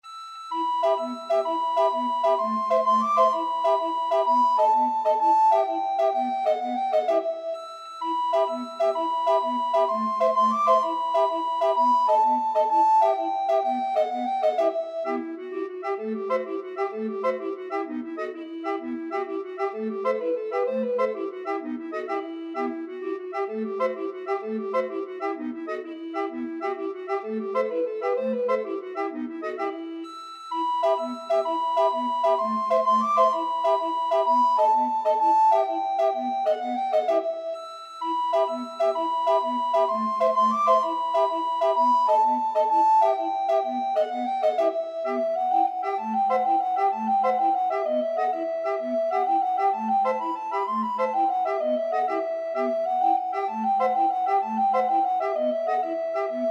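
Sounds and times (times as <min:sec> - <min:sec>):
recorder quartet: 0:00.5 - 0:56.5.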